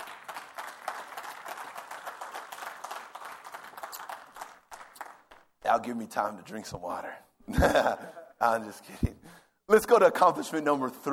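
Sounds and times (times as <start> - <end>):
audience clap offering: 0.0 - 5.8
speech: 5.7 - 11.1.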